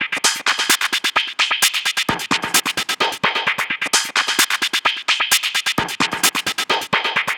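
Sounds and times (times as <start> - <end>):
techno percussion loop: 0.0 - 7.3.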